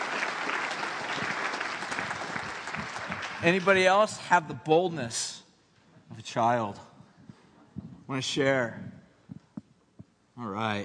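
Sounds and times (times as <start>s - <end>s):
audience applause: 0.0s - 4.1s
speech: 3.4s - 5.4s, 6.2s - 6.9s, 8.1s - 9.0s, 10.4s - 10.8s.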